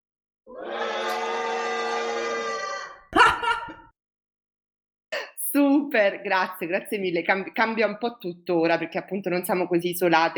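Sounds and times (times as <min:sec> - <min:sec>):
audience shouting on cue: 0:00.5 - 0:03.4
laughter: 0:03.2 - 0:03.9
speech: 0:05.5 - 0:10.3.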